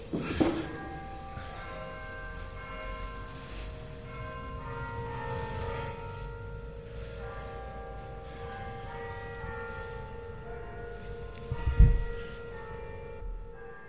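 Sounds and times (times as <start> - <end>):
Virgin's clock chiming a hymn on Carrera de la Virgen in Granada: 0.0 - 13.8
thump: 0.1 - 0.8.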